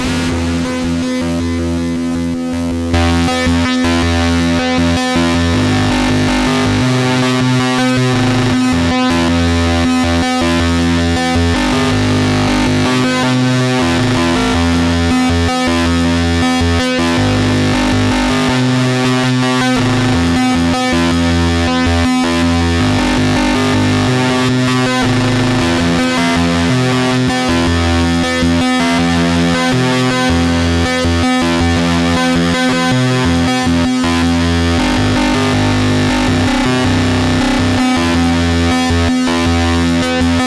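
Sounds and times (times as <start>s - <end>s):
MOOG MAVIS synthesizer fuzzy tone with stereo echo: 0.0s - 40.4s.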